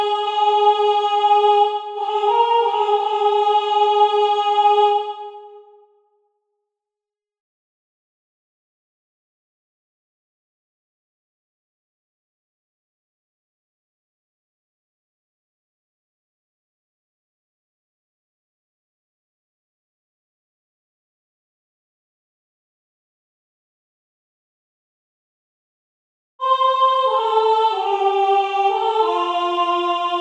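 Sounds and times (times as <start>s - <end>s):
soprano singing: 0.0s - 5.7s, 26.4s - 30.1s.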